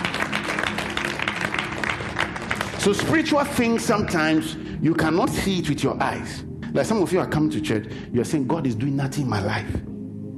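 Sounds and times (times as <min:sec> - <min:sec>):
audience clapping: 0:00.0 - 0:04.6
speech: 0:02.8 - 0:09.9.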